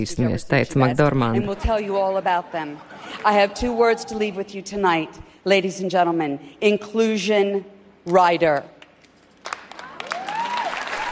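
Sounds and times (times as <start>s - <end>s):
speech: 0.0s - 8.8s
stormy applause from awards ceremony audience: 9.4s - 11.1s.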